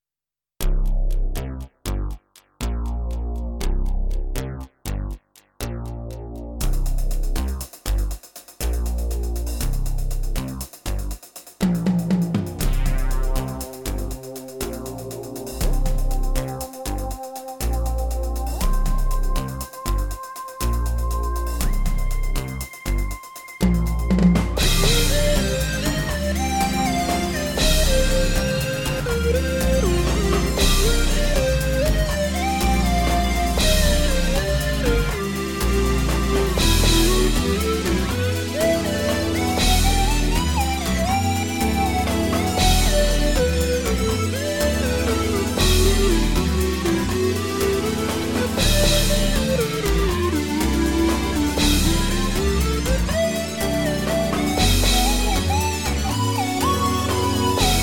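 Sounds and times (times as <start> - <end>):
electronic music: 0.6 - 57.8.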